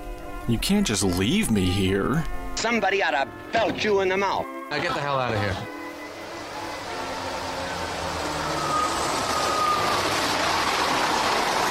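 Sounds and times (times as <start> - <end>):
speech: 0.5 - 5.8
22A bus engine roar pulling away: 5.5 - 11.6.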